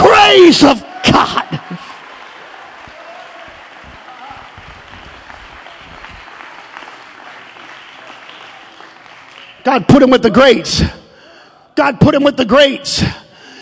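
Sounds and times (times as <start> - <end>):
speech: 0.5 - 1.5, 9.6 - 11.0, 11.8 - 13.2
audience clapping hands: 1.4 - 10.1.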